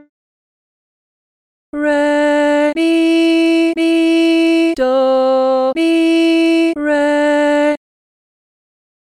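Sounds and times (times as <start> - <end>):
person singing solfa training exercise: 1.7 - 7.8.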